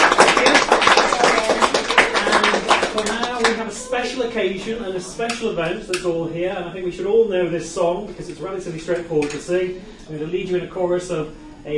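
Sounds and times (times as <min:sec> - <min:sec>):
audience applause: 0:00.0 - 0:04.0
speech: 0:04.2 - 0:11.7.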